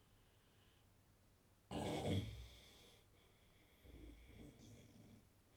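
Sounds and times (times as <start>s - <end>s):
man snoring: 1.7s - 2.9s, 3.8s - 5.1s.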